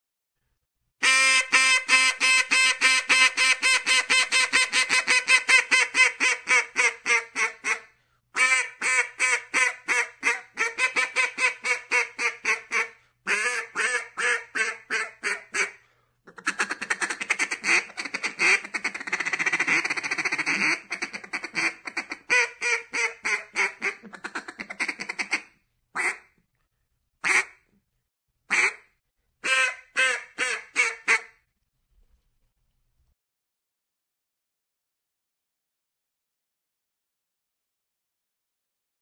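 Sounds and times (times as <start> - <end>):
duck: 1.0 - 26.3, 27.2 - 27.7, 28.5 - 31.4.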